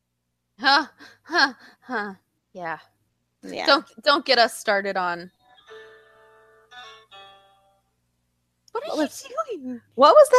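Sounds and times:
speech: 0.6 - 5.4, 8.8 - 10.3
phone ringtone: 5.4 - 7.8.

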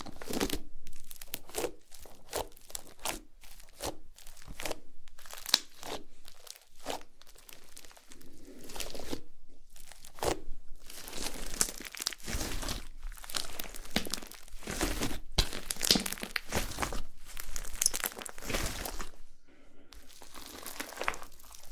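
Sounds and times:
slime squeezed and worked: 0.0 - 19.3, 20.0 - 21.7.

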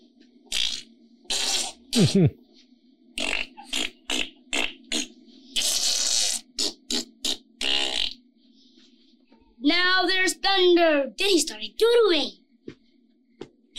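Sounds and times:
voice imitating farting noises: 0.5 - 2.3, 3.2 - 8.2
speech: 2.0 - 2.4, 10.8 - 12.4.

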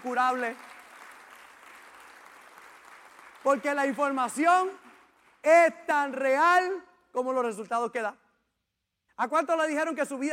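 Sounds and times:
speech: 0.0 - 0.8, 3.4 - 4.8, 5.4 - 8.2, 9.2 - 10.3
audience applause: 0.0 - 4.0.

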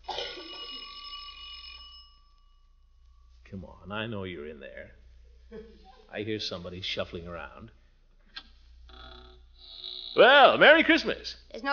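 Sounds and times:
electric doorbell ringing: 0.1 - 2.7
speech: 3.5 - 7.8, 10.2 - 11.7.

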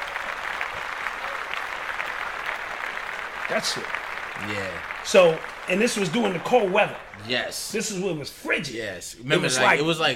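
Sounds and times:
applause: 0.0 - 8.1
speech: 3.5 - 10.1.

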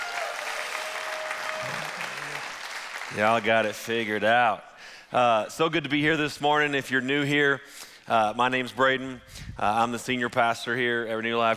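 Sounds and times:
audience applause: 0.0 - 3.8
speech: 3.1 - 11.5.

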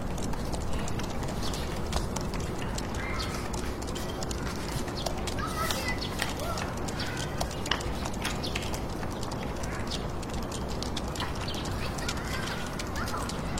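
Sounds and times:
city noise hiss and rumble: 0.0 - 13.5
faint constant hum: 0.0 - 13.5
fingertip typing in a computer room: 0.0 - 13.5.

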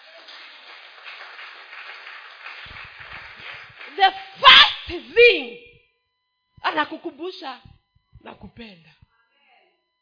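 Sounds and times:
congregation clapping for the Lord at a ladies' church seminar: 0.0 - 5.3
speech: 4.0 - 5.6, 6.7 - 9.0.

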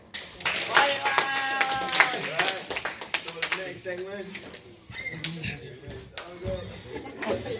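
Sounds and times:
crowd clapping: 0.0 - 4.6
voices and cheering calls: 0.6 - 2.7
laughter: 5.3 - 7.5.

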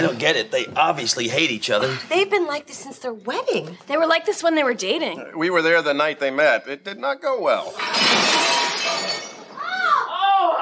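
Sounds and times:
speech: 0.0 - 8.4
dishes smashing: 7.7 - 9.7
glass shattering: 7.7 - 10.0.

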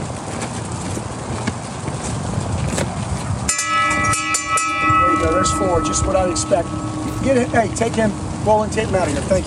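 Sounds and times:
dense steady clatter: 0.0 - 9.4
bright metallic bell ringing: 3.5 - 8.7
speech: 5.4 - 9.4.

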